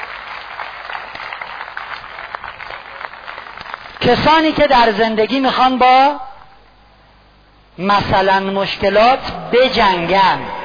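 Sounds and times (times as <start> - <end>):
crowd applauding: 0.0 - 4.0
speech: 4.0 - 6.2, 7.8 - 10.5.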